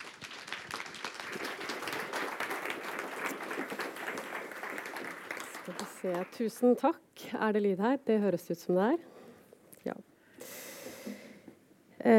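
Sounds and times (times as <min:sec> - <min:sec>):
audience applause: 0:00.0 - 0:06.4
speech: 0:05.8 - 0:09.1, 0:09.8 - 0:10.1.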